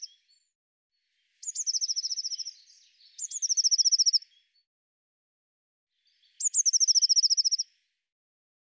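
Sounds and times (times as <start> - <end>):
Eurasian blue tit song with ringing trill: 0.0 - 4.7, 6.0 - 7.9.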